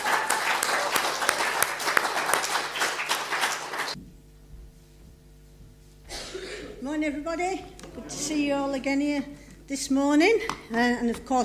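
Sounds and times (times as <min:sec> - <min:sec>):
audience applauding: 0:00.0 - 0:04.0
speech: 0:06.9 - 0:11.4.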